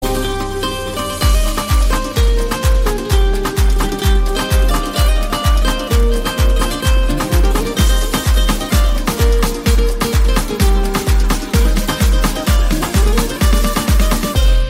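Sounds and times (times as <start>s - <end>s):
guitar ringtone: 0.0s - 14.6s.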